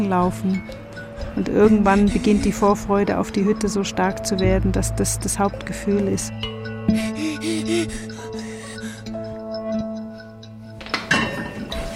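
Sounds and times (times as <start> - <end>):
speech: 0.0 - 0.8, 1.4 - 8.0
two pots and a pan clinking on a gas stove: 10.8 - 11.8.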